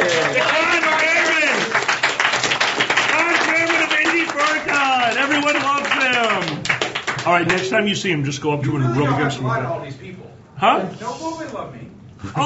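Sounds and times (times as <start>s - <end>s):
round of applause: 0.0s - 7.7s
speech: 7.4s - 10.0s, 10.6s - 11.7s.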